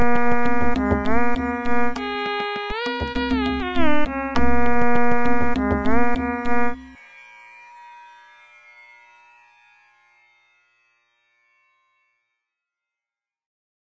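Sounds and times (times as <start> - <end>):
folk tune: 0.0 - 7.0.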